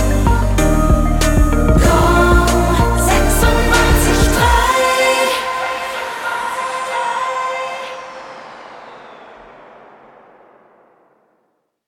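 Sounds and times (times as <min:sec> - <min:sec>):
slow hip hop main theme: 0:00.0 - 0:09.2.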